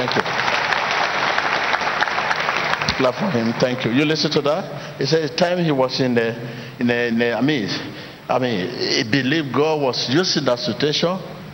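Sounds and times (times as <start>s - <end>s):
audience clapping: 0.0s - 4.3s
speech: 3.0s - 11.4s.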